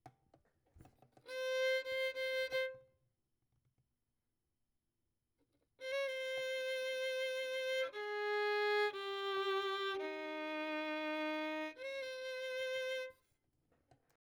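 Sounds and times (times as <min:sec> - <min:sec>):
violin: 0:01.2 - 0:02.9, 0:05.8 - 0:13.2.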